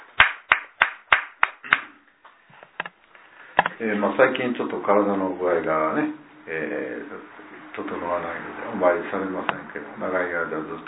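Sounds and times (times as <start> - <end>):
hand clapping celebrating a woman's 89th birthday: 0.0 - 1.9
speech: 3.8 - 10.8.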